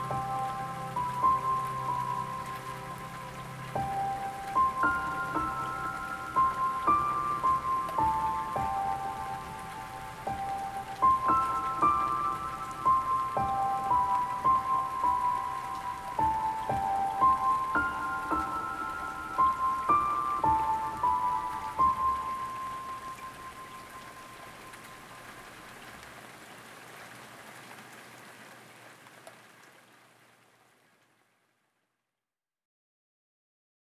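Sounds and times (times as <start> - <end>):
piano lullaby: 0.0 - 25.4
rain: 0.0 - 31.8.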